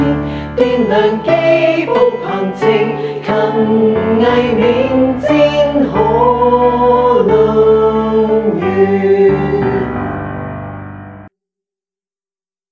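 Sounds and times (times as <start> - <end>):
choir singing a school song: 0.0 - 10.1.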